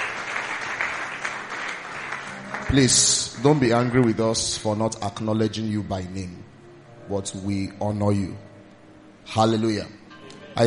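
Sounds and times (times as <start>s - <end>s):
church congregation applause: 0.0s - 4.6s
speech: 2.7s - 6.5s, 7.1s - 8.5s, 9.3s - 10.0s.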